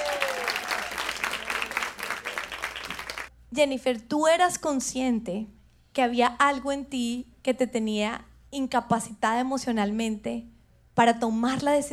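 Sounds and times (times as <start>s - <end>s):
loud audience applause: 0.0s - 3.3s
speech: 3.5s - 11.9s.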